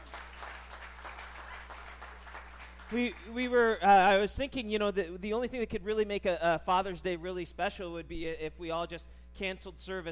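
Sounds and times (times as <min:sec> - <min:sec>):
audience applause: 0:00.0 - 0:03.3
speech: 0:02.9 - 0:10.0.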